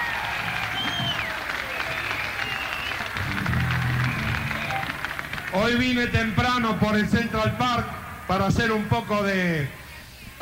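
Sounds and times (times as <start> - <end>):
crowd audience applause: 0.0 - 6.9
speech: 5.6 - 9.8.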